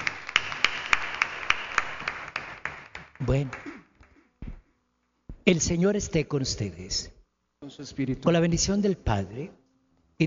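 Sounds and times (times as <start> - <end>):
applause for birthday girl: 0.0 - 4.2
speech: 3.2 - 3.7, 5.5 - 9.6.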